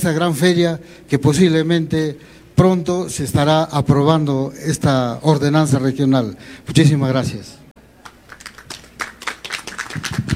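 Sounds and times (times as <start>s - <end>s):
speech: 0.0s - 7.6s
audience applause: 8.0s - 10.3s.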